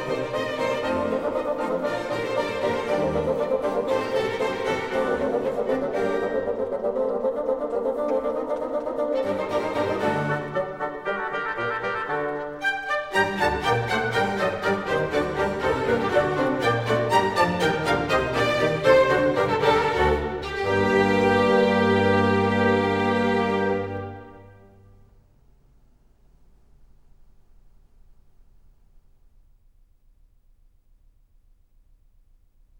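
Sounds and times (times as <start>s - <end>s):
concerto grosso in B flat major: 0.0s - 24.9s.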